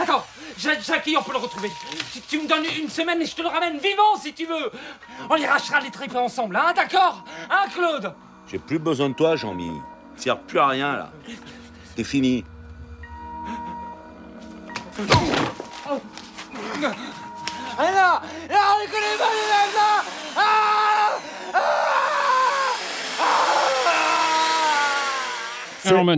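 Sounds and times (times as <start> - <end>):
circular saw: 0.0 - 26.0
speech: 0.1 - 12.5, 15.0 - 16.2, 16.8 - 17.1, 17.8 - 20.8, 25.8 - 26.1.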